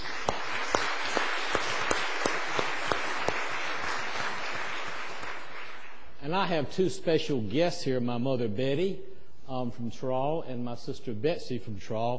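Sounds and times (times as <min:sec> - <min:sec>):
audience applause: 0:00.0 - 0:06.1
speech: 0:06.4 - 0:12.1.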